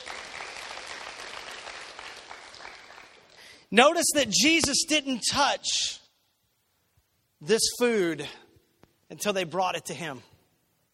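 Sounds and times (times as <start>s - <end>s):
audience clapping: 0.0s - 3.6s
speech: 3.7s - 6.0s, 7.4s - 8.4s, 9.1s - 10.3s.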